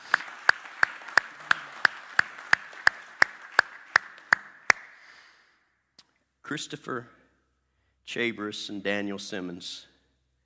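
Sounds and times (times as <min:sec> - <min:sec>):
audience clapping hands: 0:00.0 - 0:05.2
speech: 0:06.5 - 0:07.2, 0:08.1 - 0:09.9.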